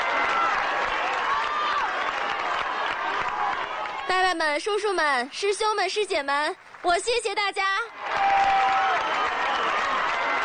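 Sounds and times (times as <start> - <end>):
audience applause: 0.0 - 4.4, 7.9 - 10.4
speech: 4.1 - 8.6.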